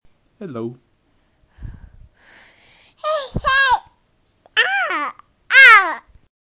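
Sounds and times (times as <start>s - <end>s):
baby: 3.0s - 6.1s.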